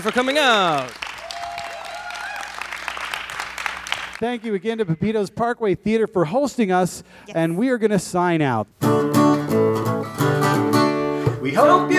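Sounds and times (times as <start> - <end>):
speech: 0.0 - 1.0, 4.2 - 10.2, 11.4 - 11.9
audience applause: 0.0 - 4.2.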